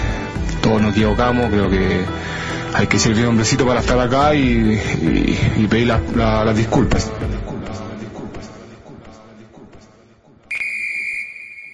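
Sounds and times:
speech: 0:00.7 - 0:07.4
referee's final whistle: 0:10.5 - 0:11.7.

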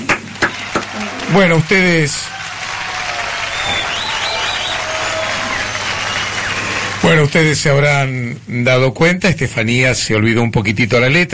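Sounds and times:
crowd applause: 0:00.0 - 0:08.1
speech: 0:01.3 - 0:02.3, 0:07.1 - 0:11.3.

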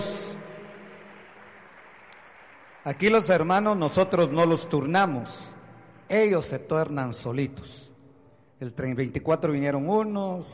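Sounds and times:
audience applause: 0:00.0 - 0:04.0
speech: 0:02.8 - 0:07.9, 0:08.6 - 0:10.5.

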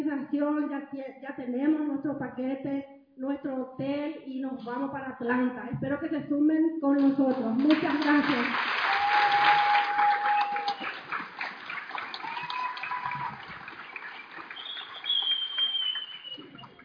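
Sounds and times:
speech: 0:00.4 - 0:09.7
audience applause: 0:07.6 - 0:16.8.

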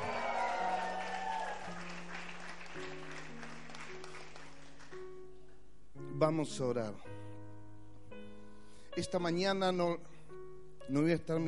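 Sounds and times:
crowd cheering and shouting for joy: 0:00.0 - 0:01.7
audience applauding: 0:00.0 - 0:05.0
speech: 0:06.2 - 0:07.1, 0:09.0 - 0:10.1, 0:10.9 - 0:11.4.

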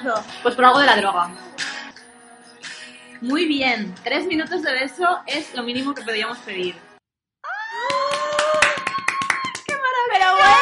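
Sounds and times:
speech: 0:00.0 - 0:01.7, 0:03.2 - 0:06.9
hands clapping in applause: 0:07.8 - 0:10.5.

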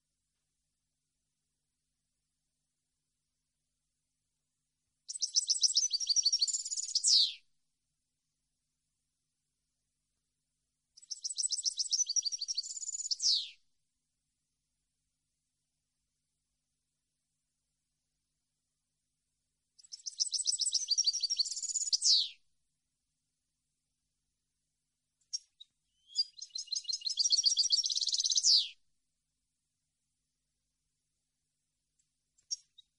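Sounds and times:
European goldfinch twittering song: 0:05.1 - 0:07.4, 0:11.0 - 0:13.6, 0:19.8 - 0:22.4, 0:25.3 - 0:28.7.

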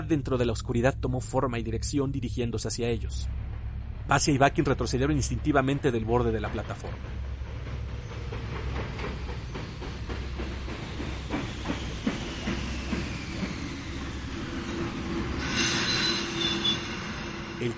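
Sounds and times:
speech: 0:00.1 - 0:03.4, 0:04.1 - 0:07.3
large steam train braking into a station: 0:06.9 - 0:17.7.

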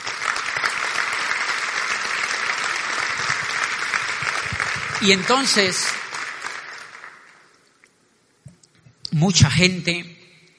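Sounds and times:
audience applause: 0:00.0 - 0:07.6
speech: 0:05.0 - 0:06.0, 0:09.2 - 0:10.1.

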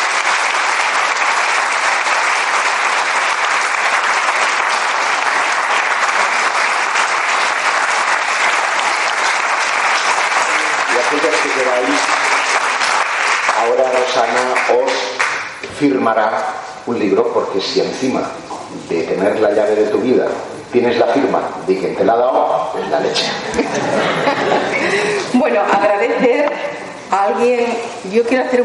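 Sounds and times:
audience applause: 0:00.0 - 0:15.6, 0:23.4 - 0:26.0
speech: 0:13.6 - 0:15.2, 0:15.8 - 0:28.6
laughter: 0:22.8 - 0:26.8.

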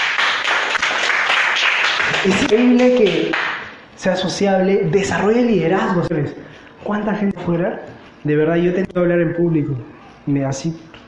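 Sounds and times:
audience applause: 0:00.0 - 0:03.6
speech: 0:02.2 - 0:10.9.

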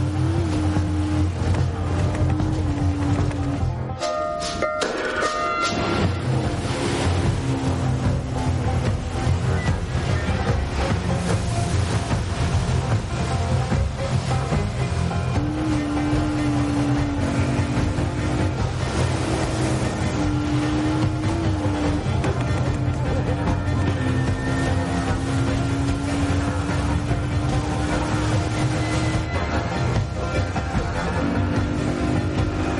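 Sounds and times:
motorboat engines roaring in a chase along a river: 0:00.0 - 0:32.7.

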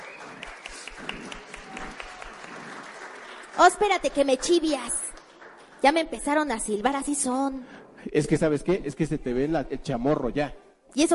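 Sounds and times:
audience applause: 0:00.0 - 0:06.8
speech: 0:03.6 - 0:05.0, 0:05.8 - 0:11.1.

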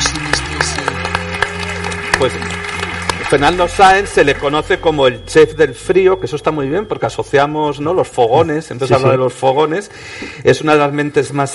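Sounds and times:
applause: 0:00.0 - 0:05.2
speech: 0:02.2 - 0:02.5, 0:03.3 - 0:11.5.

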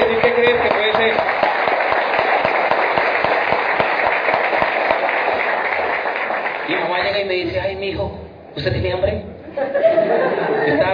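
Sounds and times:
crowd applauding: 0:00.0 - 0:07.0
speech: 0:07.2 - 0:10.9
laughter: 0:09.4 - 0:10.9.

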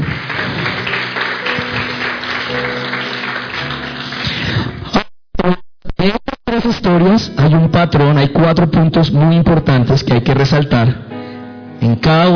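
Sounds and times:
loud applause: 0:00.0 - 0:04.8
speech: 0:05.4 - 0:05.6, 0:07.0 - 0:11.1, 0:11.8 - 0:12.3.

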